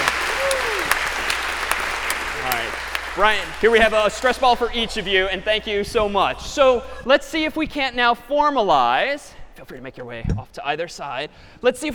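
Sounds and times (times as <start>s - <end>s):
audience applause for volunteers at a talk: 0.0s - 5.3s
speech: 3.2s - 11.9s.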